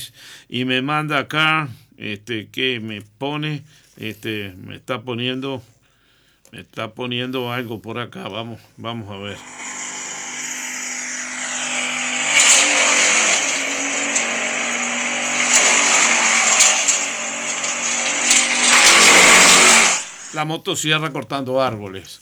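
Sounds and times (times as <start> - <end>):
speech: 0.0 - 5.7, 6.5 - 9.6, 20.4 - 22.1
chainsaw cutting trees: 9.2 - 22.0.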